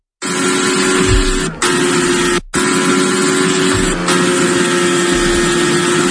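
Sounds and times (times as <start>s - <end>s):
Formula 1 single-seater race car engine roaring at high revs: 0.2s - 6.0s.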